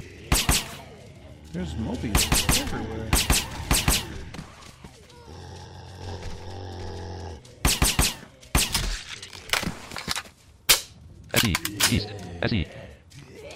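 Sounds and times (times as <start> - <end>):
video game gunfire shooting zombies: 0.3 - 0.8, 2.1 - 4.3, 7.6 - 8.9
speech: 1.5 - 3.5, 11.4 - 12.8.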